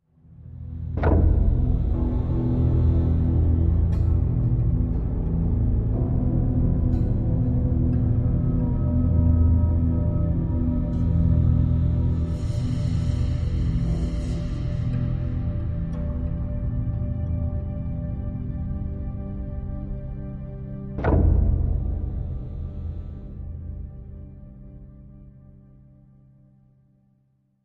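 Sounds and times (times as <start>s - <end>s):
spooky music loop: 0.5s - 25.1s.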